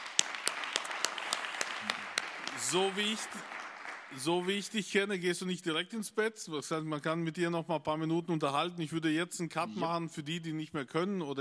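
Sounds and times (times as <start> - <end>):
audience applause: 0.0 - 4.7
speech: 2.7 - 11.3.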